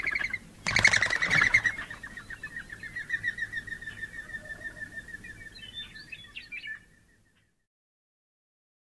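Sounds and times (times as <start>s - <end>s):
mourning dove cooing: 0.0s - 5.0s.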